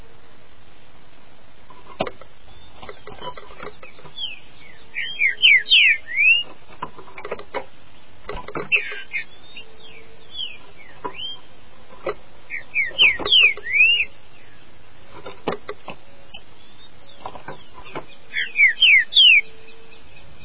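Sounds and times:
green-winged saltator song: 0:02.5 - 0:06.5, 0:08.6 - 0:11.5, 0:12.5 - 0:14.7, 0:16.2 - 0:20.4.

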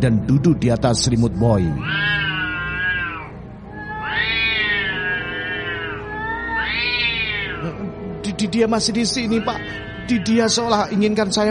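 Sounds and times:
speech: 0:00.0 - 0:02.3, 0:08.4 - 0:11.5
cat snarling and yowling fiercely with a low rumbling growl: 0:01.8 - 0:07.8, 0:09.2 - 0:10.4.

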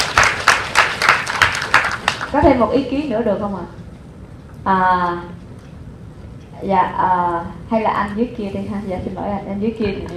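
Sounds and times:
audience applause: 0:00.0 - 0:02.3
speech: 0:02.3 - 0:03.8, 0:04.6 - 0:05.4, 0:06.6 - 0:10.1.

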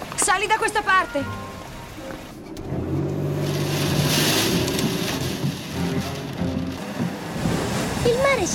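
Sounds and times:
speech: 0:00.3 - 0:01.4, 0:08.0 - 0:08.5
stormy wind roaring: 0:01.9 - 0:08.5.

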